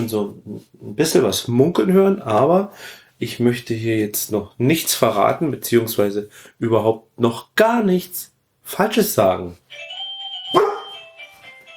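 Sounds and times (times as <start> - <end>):
speech: 0.0 - 9.9, 10.5 - 10.7
dog barking: 10.5 - 11.0.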